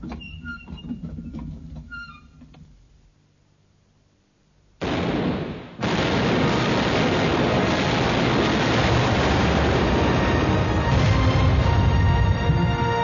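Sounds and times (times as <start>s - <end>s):
ship cannon fire sound effect: 4.8s - 12.8s.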